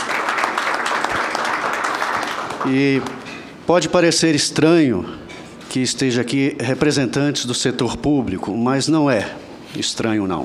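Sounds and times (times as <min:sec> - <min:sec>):
audience applause at a public event in Brazil: 0:00.0 - 0:03.2
speech: 0:02.6 - 0:10.4.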